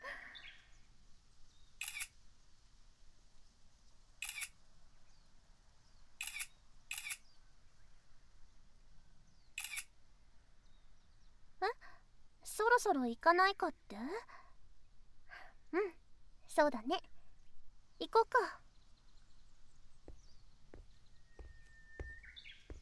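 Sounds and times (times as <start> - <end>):
camera shutter clicks: 1.8 - 2.1, 4.2 - 4.5, 6.2 - 7.2, 9.6 - 9.9
speech: 12.8 - 14.4, 15.7 - 16.0, 16.6 - 17.1, 18.1 - 18.6.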